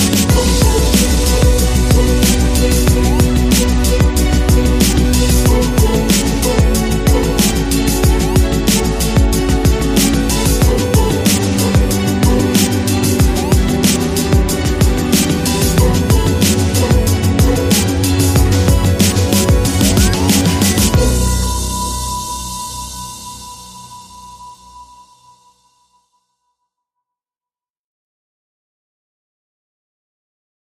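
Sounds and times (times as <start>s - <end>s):
dramatic strings: 0.0s - 23.4s.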